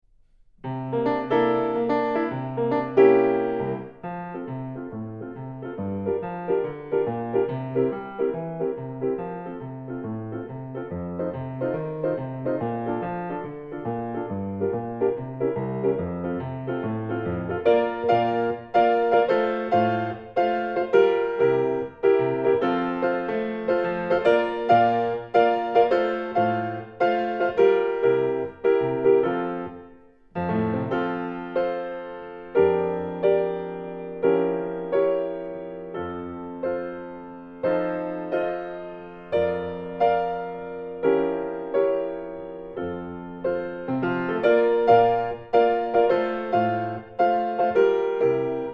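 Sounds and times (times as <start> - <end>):
piano: 0.0 - 48.7.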